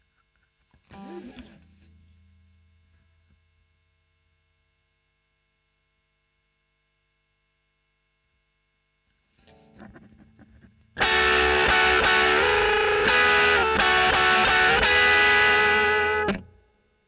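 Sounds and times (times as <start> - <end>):
overdriven electric guitar recorded with a Royer microphone: 0.7 - 2.7, 9.4 - 16.7.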